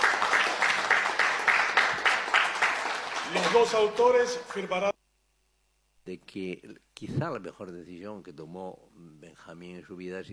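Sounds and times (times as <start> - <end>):
audience applause at a tribute event for a hundred years of radio in Paraguay: 0.0 - 4.9
speech: 3.3 - 4.9, 6.1 - 10.3.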